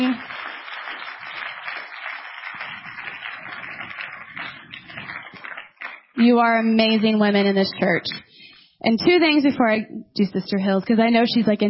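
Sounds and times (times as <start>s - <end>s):
audience applauding: 0.0s - 7.8s
speech: 6.2s - 11.6s.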